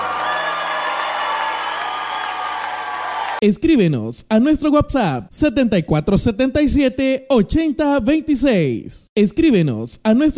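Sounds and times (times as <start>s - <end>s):
audience applause: 0.0s - 3.4s
crowd cheering: 0.0s - 3.4s
speech: 3.4s - 10.3s.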